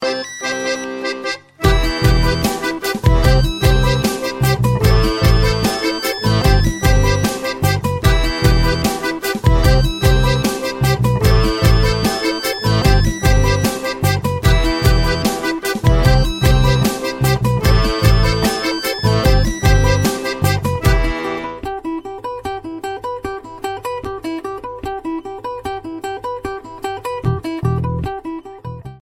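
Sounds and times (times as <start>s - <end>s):
phone ringtone remix: 0.0s - 21.6s.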